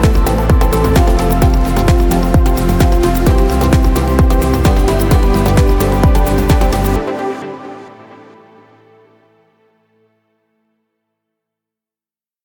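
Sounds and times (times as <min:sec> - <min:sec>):
dance groove: 0:00.0 - 0:07.2.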